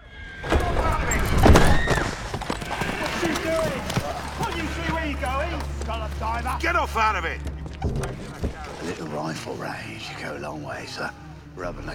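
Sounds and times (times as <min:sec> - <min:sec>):
horse hooves clattering as a horse-drawn carriage is forced to stop: 0:00.4 - 0:09.0
horse-drawn carriage wheels rumbling: 0:00.4 - 0:09.0
speech: 0:04.6 - 0:11.9.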